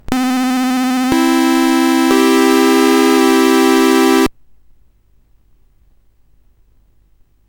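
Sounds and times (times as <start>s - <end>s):
SID CSG8580R5 chip music: 0.0s - 4.3s.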